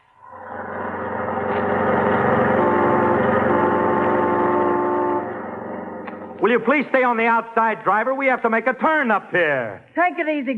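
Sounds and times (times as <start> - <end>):
car engine humming as the vehicle drives along: 0.4 - 7.0
speech: 6.5 - 10.5.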